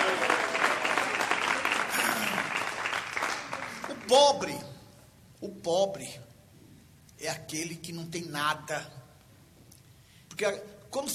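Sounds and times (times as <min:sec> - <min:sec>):
audience clapping hands: 0:00.0 - 0:04.6
speech: 0:04.1 - 0:04.7, 0:05.4 - 0:06.3, 0:07.2 - 0:09.0, 0:10.4 - 0:11.1.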